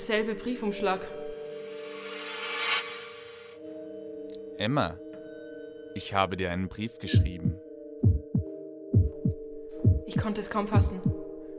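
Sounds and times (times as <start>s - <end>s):
speech: 0.1s - 1.2s, 4.6s - 5.0s, 6.0s - 7.6s, 10.1s - 11.5s
steady low hum: 1.1s - 3.6s
heartbeat sound effect thumping: 7.2s - 11.5s.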